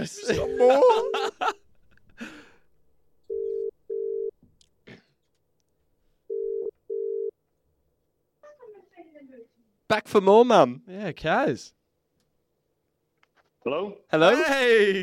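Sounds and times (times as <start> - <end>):
speech: 0.0 - 1.6, 10.0 - 11.8, 13.6 - 15.0
laughter: 0.0 - 2.4
phone line ringing out: 3.3 - 4.4, 6.3 - 7.4.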